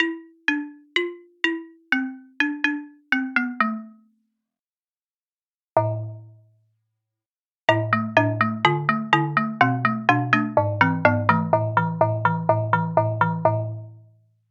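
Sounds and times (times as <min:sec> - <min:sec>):
xylophone: 0:00.0 - 0:04.1, 0:05.8 - 0:06.4, 0:07.7 - 0:14.1.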